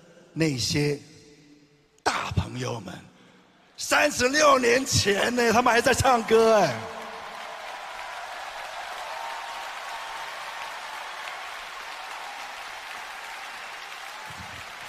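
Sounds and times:
speech: 0.4s - 1.1s, 2.5s - 3.1s, 3.8s - 7.0s
audience applause: 5.6s - 14.8s.

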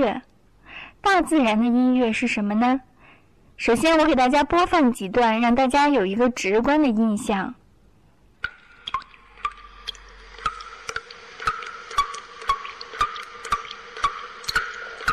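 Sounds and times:
speech: 0.0s - 0.3s, 1.0s - 2.9s, 3.6s - 7.6s
water dripping from the eaves: 8.4s - 15.1s.

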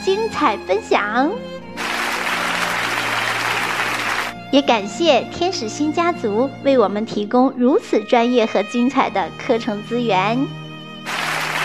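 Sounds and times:
speech: 0.1s - 1.5s, 4.5s - 10.6s
audience applause: 1.8s - 4.4s, 11.1s - 11.6s.

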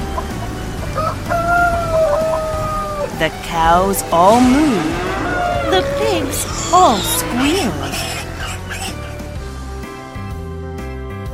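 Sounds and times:
chickens clucking: 0.0s - 9.4s
rooster crowing: 0.9s - 3.2s, 4.9s - 9.0s
speech: 3.2s - 5.1s, 5.7s - 8.1s.

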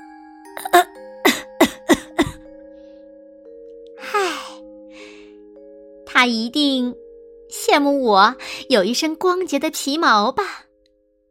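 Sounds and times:
throat clearing: 0.6s - 2.4s
coughing: 0.6s - 2.5s
speech: 6.2s - 7.0s, 7.6s - 10.6s.

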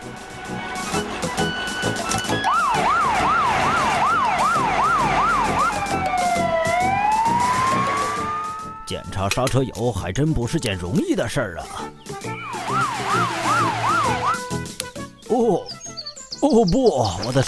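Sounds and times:
fire engine siren: 0.0s - 8.9s, 12.4s - 14.6s
speech: 9.2s - 12.4s, 15.3s - 15.8s, 16.4s - 17.4s.

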